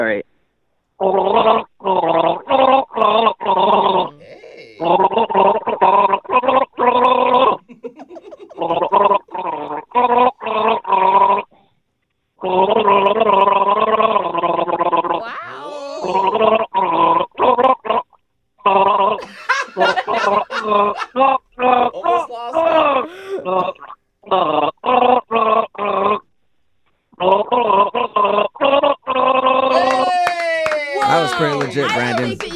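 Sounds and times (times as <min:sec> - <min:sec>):
person gargling a song with soda: 0:01.0 - 0:07.7, 0:08.6 - 0:11.5, 0:12.4 - 0:18.1, 0:21.6 - 0:26.2, 0:27.2 - 0:30.2
laughter: 0:03.4 - 0:05.3, 0:07.2 - 0:10.2, 0:15.2 - 0:16.5, 0:19.2 - 0:23.8, 0:29.7 - 0:32.5.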